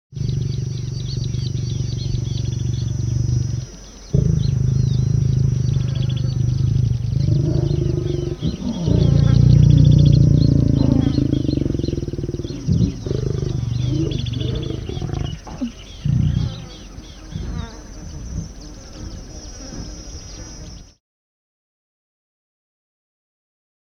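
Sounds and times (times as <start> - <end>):
lion mating growls: 0.1 - 18.6.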